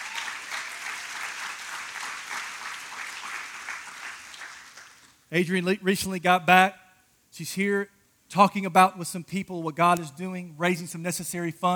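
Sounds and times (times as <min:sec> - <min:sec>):
audience applause for a missionary: 0:00.0 - 0:05.1
speech: 0:05.3 - 0:11.7.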